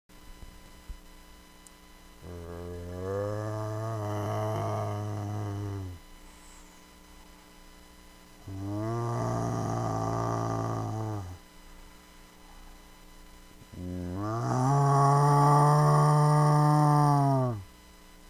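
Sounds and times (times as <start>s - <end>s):
zombie: 2.2s - 6.0s, 8.4s - 11.4s, 13.7s - 17.7s.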